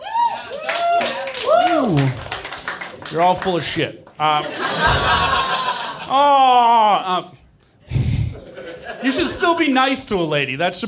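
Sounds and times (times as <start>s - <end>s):
audience clapping: 0.2s - 4.4s
speech: 1.9s - 2.2s, 3.1s - 5.4s, 6.1s - 7.4s, 9.0s - 10.8s
laughter: 4.3s - 6.9s, 7.9s - 9.8s.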